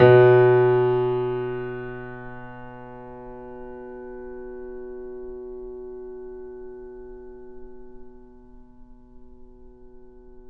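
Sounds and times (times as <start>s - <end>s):
grand piano: 0.0s - 8.1s.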